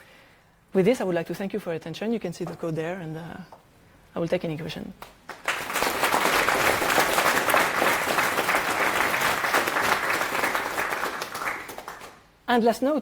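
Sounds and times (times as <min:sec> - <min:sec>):
speech: 0:00.8 - 0:03.6, 0:04.2 - 0:05.2, 0:12.5 - 0:12.9
audience applause after a talk: 0:05.3 - 0:12.2.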